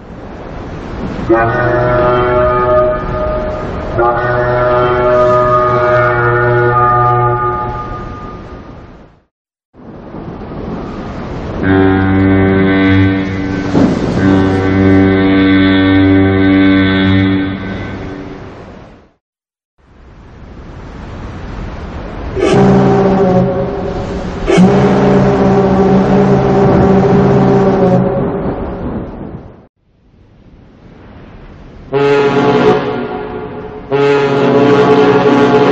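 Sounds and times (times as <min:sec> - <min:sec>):
large warship cruiser whistle: 0:01.2 - 0:08.9, 0:11.6 - 0:18.6, 0:22.3 - 0:28.4, 0:31.9 - 0:35.6.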